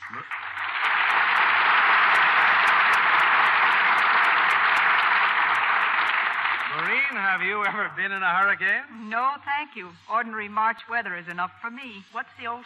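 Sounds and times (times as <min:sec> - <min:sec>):
large studio audience applause: 0:00.0 - 0:08.8
speech: 0:07.2 - 0:12.6.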